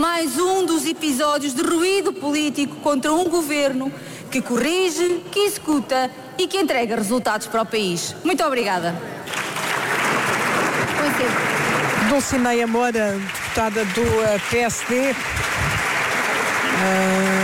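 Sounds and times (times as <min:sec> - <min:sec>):
speech: 0:00.0 - 0:09.4, 0:11.0 - 0:15.5, 0:16.8 - 0:17.3
applause from parliament bench: 0:09.2 - 0:17.4.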